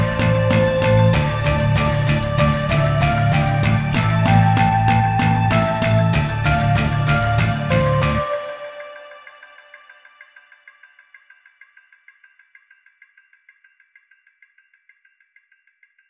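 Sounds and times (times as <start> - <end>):
metal work: 0.0 - 8.3.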